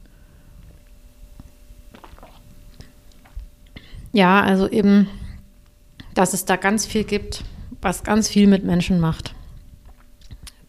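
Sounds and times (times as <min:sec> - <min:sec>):
person taking a quick drink, gulping and swallowing: 0:01.9 - 0:03.5, 0:09.8 - 0:10.6
speech: 0:04.1 - 0:05.2, 0:06.2 - 0:09.4.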